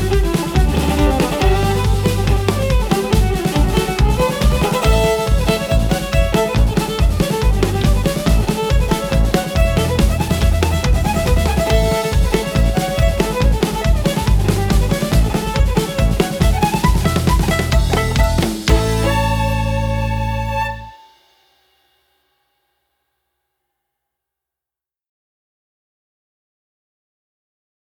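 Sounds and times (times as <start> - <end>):
jig tune: 0.0 - 21.0.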